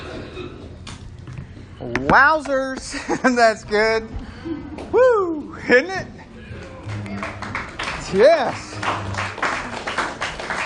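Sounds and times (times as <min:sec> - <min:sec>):
speech: 0:01.8 - 0:06.2, 0:08.1 - 0:09.2
light scattered clapping from a small group: 0:06.6 - 0:10.6.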